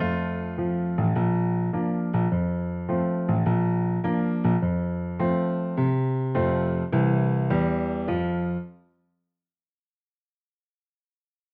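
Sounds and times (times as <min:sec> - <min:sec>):
piano: 0:00.0 - 0:09.0.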